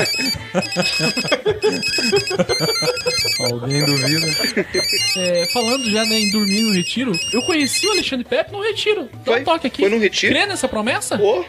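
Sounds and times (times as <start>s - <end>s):
laughter: 0.0s - 6.6s
cell phone ringing: 0.0s - 8.1s
speech: 0.0s - 11.4s.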